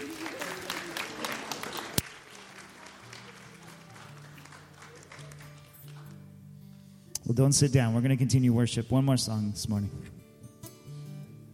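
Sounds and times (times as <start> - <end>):
audience applause: 0.0 - 6.2
speech: 7.3 - 10.2.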